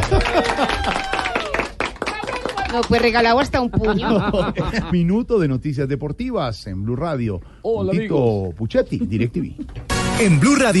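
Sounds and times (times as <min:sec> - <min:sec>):
laughter: 0:00.0 - 0:01.2, 0:03.6 - 0:05.2
studio audience applause: 0:00.0 - 0:04.3
speech: 0:02.7 - 0:10.7.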